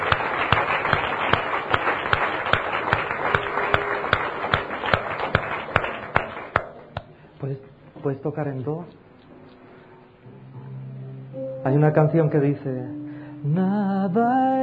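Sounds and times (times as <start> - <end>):
audience applauding loudly: 0.0 - 6.8
speech: 8.0 - 9.0, 11.6 - 14.6.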